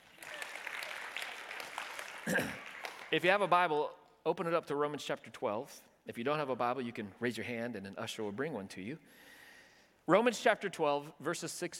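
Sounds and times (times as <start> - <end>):
crowd clapping: 0.0 - 3.9
speech: 2.3 - 9.3, 10.1 - 11.7.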